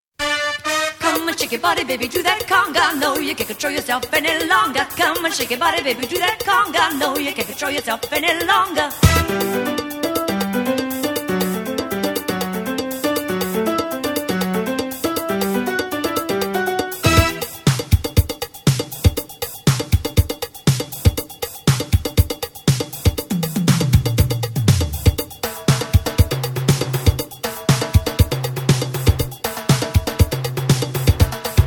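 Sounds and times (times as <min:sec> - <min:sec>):
conga drum: 0:00.9 - 0:31.6.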